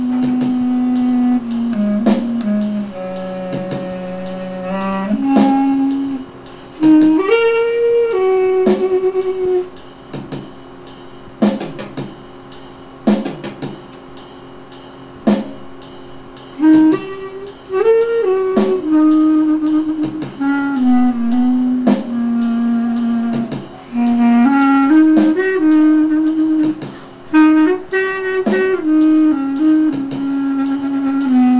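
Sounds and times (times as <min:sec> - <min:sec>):
saxophone: 0:00.0 - 0:09.9, 0:16.5 - 0:31.5
musical accompaniment: 0:00.0 - 0:31.5.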